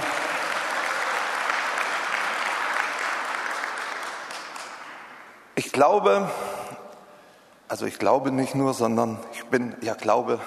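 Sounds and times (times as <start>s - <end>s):
audience clapping: 0.0s - 5.4s
speech: 5.6s - 6.8s, 7.7s - 10.4s.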